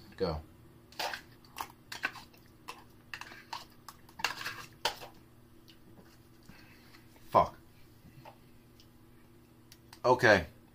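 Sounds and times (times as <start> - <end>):
speech: 0.2 - 0.5, 10.0 - 10.6
eating a pudding cup with a spoon: 1.0 - 7.1.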